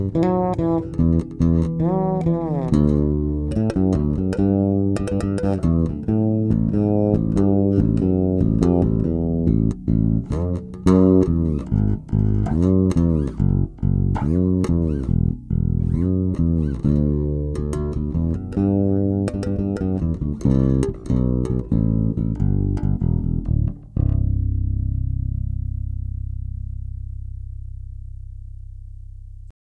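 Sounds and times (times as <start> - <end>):
guitar through Q Tuner bridge pickup: 0.0 - 29.5.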